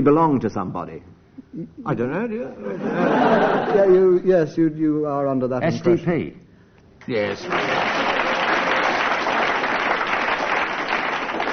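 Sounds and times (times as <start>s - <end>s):
speech: 0.0s - 6.4s, 7.1s - 8.0s
laughter: 2.6s - 4.1s
studio audience applause: 7.2s - 11.5s.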